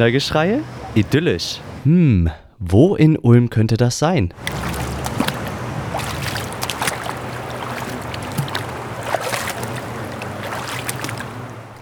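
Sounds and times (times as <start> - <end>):
water flowing in a Kneipp wading pool: 0.0 - 1.8, 4.4 - 11.8
speech: 0.0 - 4.7.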